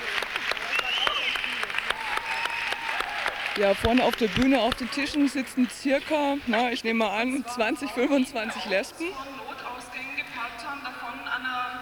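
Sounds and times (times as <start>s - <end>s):
audience applause: 0.0s - 6.6s
speech: 3.6s - 9.5s
voices calling and murmuring: 3.6s - 11.8s.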